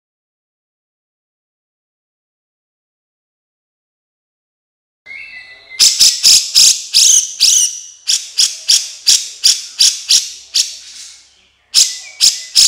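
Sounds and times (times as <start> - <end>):
Horsfield's bush lark song: 5.1 - 12.6.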